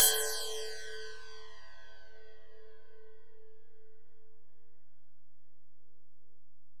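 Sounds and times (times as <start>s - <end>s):
ride cymbal on Alesis DM-PRO: 0.0s - 0.6s.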